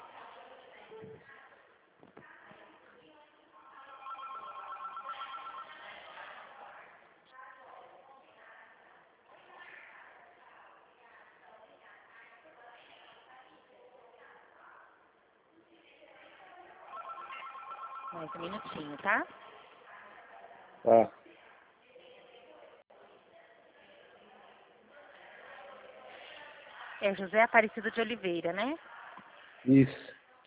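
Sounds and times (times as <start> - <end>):
ringback tone of an outgoing telephone call through a phone line: 3.6 - 6.0, 16.9 - 19.3
speech: 18.2 - 19.4, 20.8 - 21.2, 27.0 - 28.9, 29.6 - 30.1.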